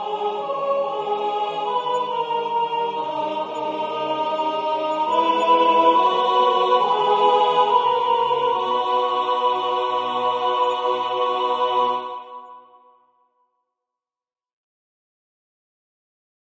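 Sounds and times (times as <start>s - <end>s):
soprano voice: 0.0s - 12.4s.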